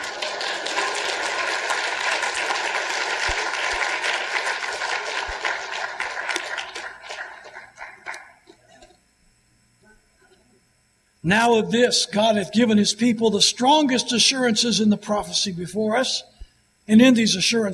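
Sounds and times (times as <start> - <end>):
audience applause: 0.0 - 8.6
speech: 11.2 - 16.3, 16.9 - 17.7.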